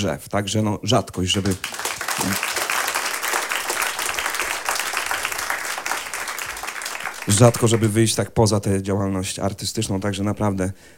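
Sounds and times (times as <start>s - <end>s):
speech: 0.0s - 2.6s, 7.3s - 10.9s
crowd applauding loudly: 1.2s - 8.2s.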